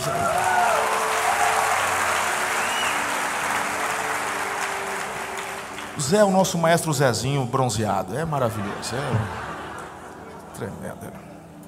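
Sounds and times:
speech: 0:00.0 - 0:00.3, 0:06.0 - 0:09.5, 0:10.6 - 0:11.3
audience applause: 0:00.0 - 0:06.4
laughter: 0:08.3 - 0:11.2.

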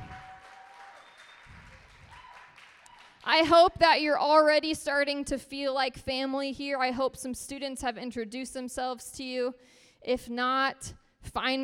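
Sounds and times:
audience applauding to welcome first-time visitors: 0:00.0 - 0:03.3
speech: 0:03.2 - 0:11.6.

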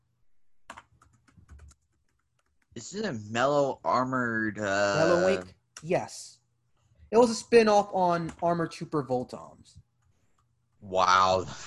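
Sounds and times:
typing on a computer keyboard: 0:00.7 - 0:02.7
speech: 0:02.8 - 0:06.4, 0:07.1 - 0:09.8, 0:10.8 - 0:11.6.

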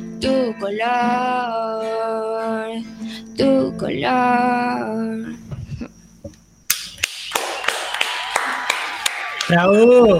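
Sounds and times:
speech: 0:00.2 - 0:05.3, 0:09.5 - 0:10.1
scattered audience clapping in a dark patio under trees: 0:06.7 - 0:09.6.

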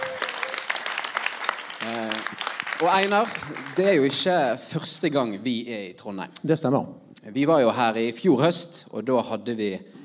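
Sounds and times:
audience applause: 0:00.0 - 0:04.4
speech: 0:01.8 - 0:09.9.

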